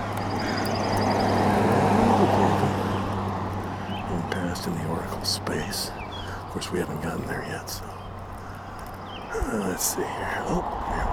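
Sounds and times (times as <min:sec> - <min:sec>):
faint bird chirps: 0:00.0 - 0:01.6, 0:03.8 - 0:10.5
vehicle driving past on a road: 0:00.0 - 0:05.0
speech: 0:05.5 - 0:06.0, 0:06.6 - 0:08.0, 0:09.4 - 0:11.1.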